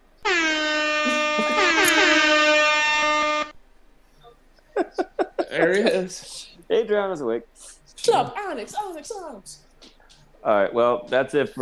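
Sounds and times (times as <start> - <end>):
brassy air horn sound effect: 0.3 - 3.5
laughter: 1.1 - 2.3, 4.7 - 6.4
speech: 5.7 - 9.7, 10.4 - 11.5.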